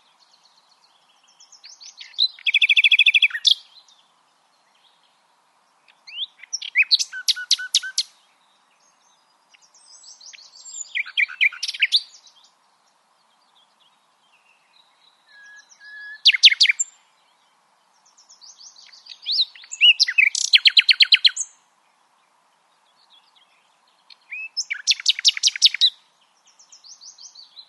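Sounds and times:
Common nightingale song: 0:00.2 - 0:04.0, 0:05.9 - 0:08.3, 0:09.1 - 0:12.5, 0:13.4 - 0:17.0, 0:18.0 - 0:21.6, 0:24.1 - 0:27.6.

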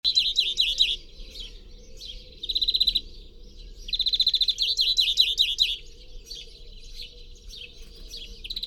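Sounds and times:
European greenfinch Chloris chloris calls: 0:00.1 - 0:08.6.

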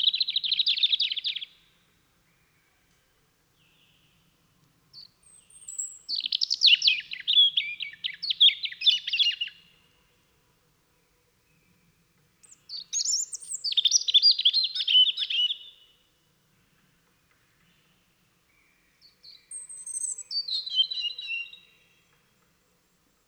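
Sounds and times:
European robin singing: 0:00.0 - 0:02.6, 0:04.9 - 0:09.9, 0:11.5 - 0:16.0, 0:17.6 - 0:22.4.

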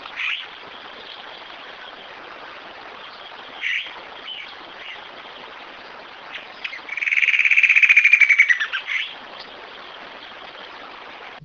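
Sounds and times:
bird trilling: 0:03.6 - 0:05.0, 0:06.3 - 0:09.2.

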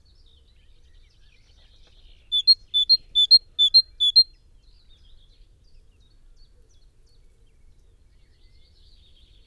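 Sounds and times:
great tit Parus major song of ringing two-note phrases: 0:02.3 - 0:04.2.

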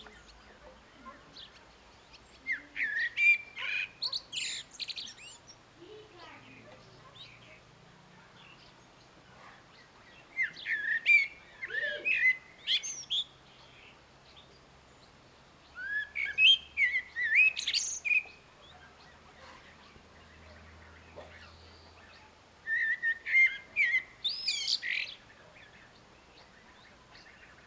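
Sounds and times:
common blackbird singing: 0:00.0 - 0:07.7, 0:08.3 - 0:27.6.

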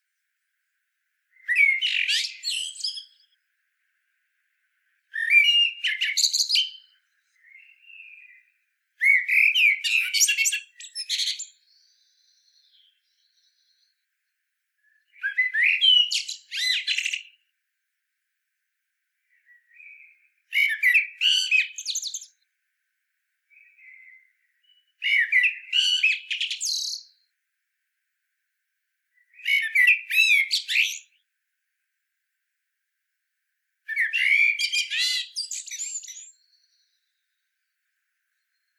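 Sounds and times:
Common blackbird singing: 0:01.3 - 0:03.4, 0:05.1 - 0:14.0, 0:14.8 - 0:17.4, 0:19.3 - 0:22.4, 0:23.5 - 0:27.2, 0:29.2 - 0:31.2, 0:33.9 - 0:37.7, 0:38.4 - 0:38.7.

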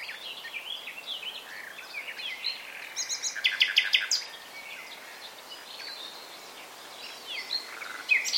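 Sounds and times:
common nightingale Luscinia megarhynchos singing: 0:00.0 - 0:08.3.

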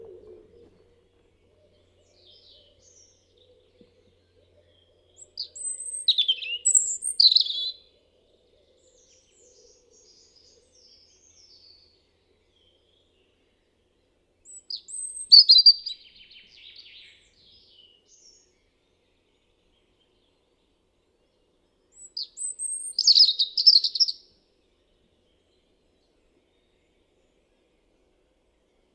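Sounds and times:
European robin singing: 0:00.0 - 0:13.4, 0:14.4 - 0:20.3, 0:21.9 - 0:24.3.

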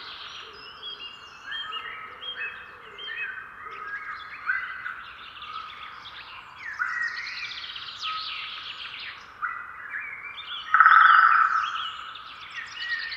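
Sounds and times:
Eurasian jay calling: 0:10.7 - 0:12.0.

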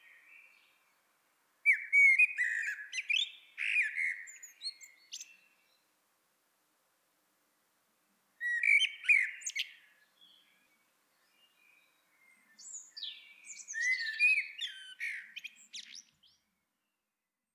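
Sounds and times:
Eurasian blackbird song: 0:00.0 - 0:06.0, 0:08.4 - 0:17.2.

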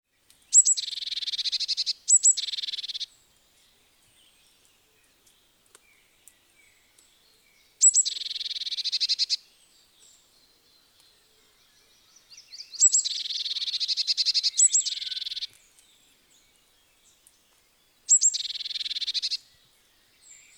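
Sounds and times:
Eurasian blue tit churring calls: 0:00.6 - 0:03.0, 0:07.8 - 0:09.4, 0:12.8 - 0:15.5, 0:18.1 - 0:19.4.

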